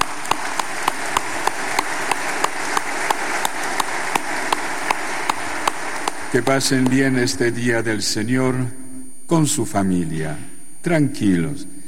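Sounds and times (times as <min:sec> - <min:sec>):
audience applauding: 0:00.0 - 0:07.4
speech: 0:06.3 - 0:11.8.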